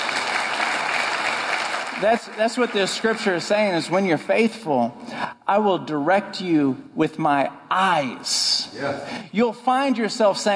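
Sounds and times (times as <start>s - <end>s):
crowd applause: 0.0s - 3.6s
speech: 2.0s - 10.5s.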